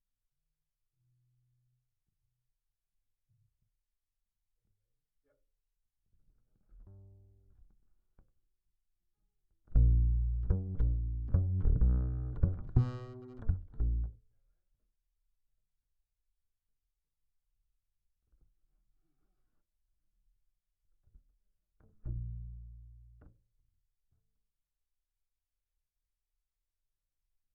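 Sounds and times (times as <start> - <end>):
bass guitar recorded by direct input: 6.8 - 7.6, 9.7 - 14.2, 22.0 - 23.4.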